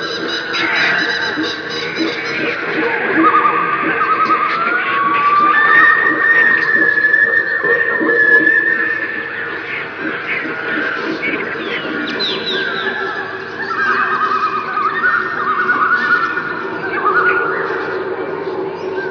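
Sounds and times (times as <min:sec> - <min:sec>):
African jungle ambience: 0:00.0 - 0:19.0.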